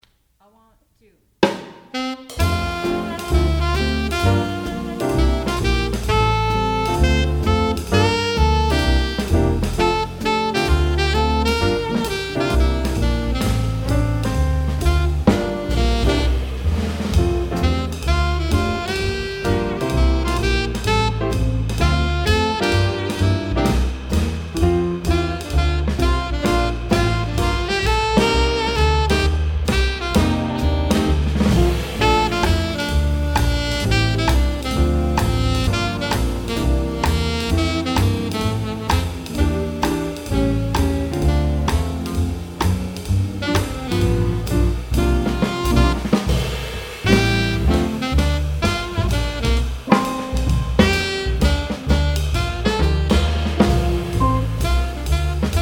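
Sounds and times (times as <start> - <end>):
drums: 0.0 - 55.5.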